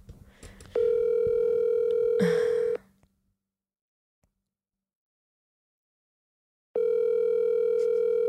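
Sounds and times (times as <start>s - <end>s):
outgoing phone call ringing: 0.8s - 2.8s, 6.8s - 8.2s.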